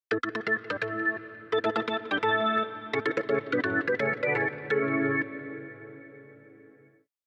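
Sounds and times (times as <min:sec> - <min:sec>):
organ: 0:00.1 - 0:06.5.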